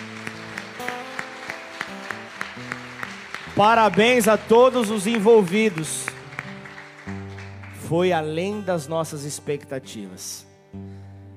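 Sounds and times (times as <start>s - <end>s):
audience applause: 0.0s - 8.2s
speech: 3.6s - 6.0s, 7.9s - 10.9s.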